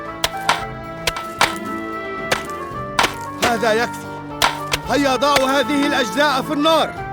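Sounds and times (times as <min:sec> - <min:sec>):
statue being smashed: 0:00.3 - 0:01.8, 0:02.3 - 0:06.1
speech: 0:03.5 - 0:04.1, 0:04.9 - 0:07.0.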